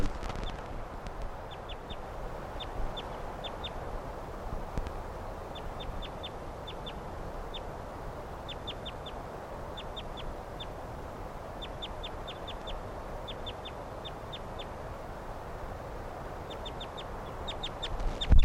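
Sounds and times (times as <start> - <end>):
wild birds calling: 0.1 - 18.4.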